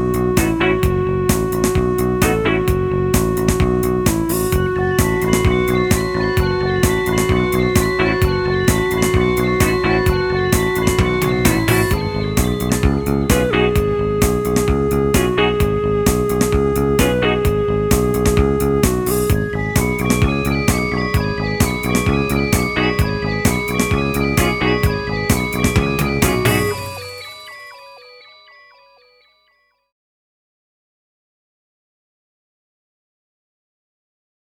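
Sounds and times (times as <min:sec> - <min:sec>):
karaoke backing track: 0:00.0 - 0:27.6.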